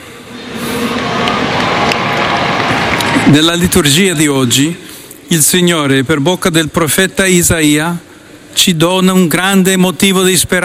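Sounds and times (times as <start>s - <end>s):
large crowd cheering outdoors: 0.0s - 4.6s
large crowd applauding in a square: 0.4s - 4.3s
speech: 3.3s - 10.6s.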